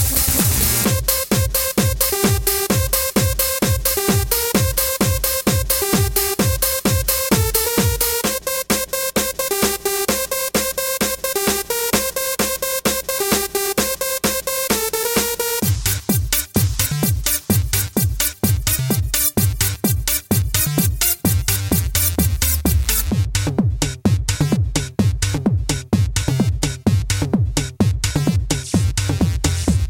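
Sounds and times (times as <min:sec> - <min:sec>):
electro music: 0:00.0 - 0:29.8.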